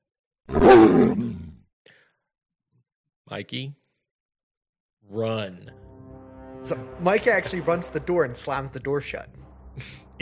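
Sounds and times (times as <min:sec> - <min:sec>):
beast growling: 0:00.5 - 0:01.6
speech: 0:00.7 - 0:01.2, 0:03.3 - 0:03.8, 0:05.1 - 0:05.8, 0:06.6 - 0:10.2.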